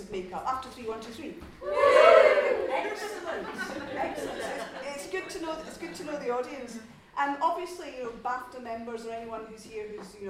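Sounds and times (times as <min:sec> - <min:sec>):
speech: 0:00.1 - 0:02.0, 0:02.8 - 0:10.2
audience cheering: 0:01.6 - 0:03.6
laughter: 0:01.6 - 0:06.2.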